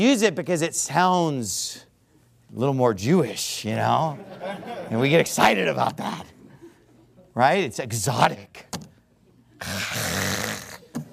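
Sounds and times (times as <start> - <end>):
speech: 0.0 - 1.9, 2.5 - 6.4, 7.4 - 8.9, 9.6 - 10.5
laughter: 4.0 - 5.4
person hawking phlegm: 9.6 - 11.1.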